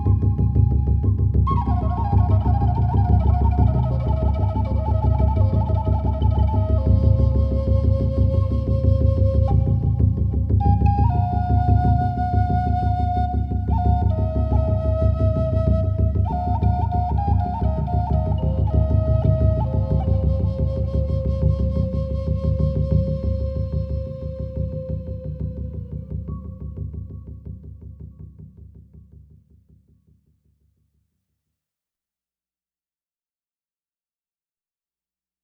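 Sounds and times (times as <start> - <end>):
flute playing a prayer: 0.0 - 26.7.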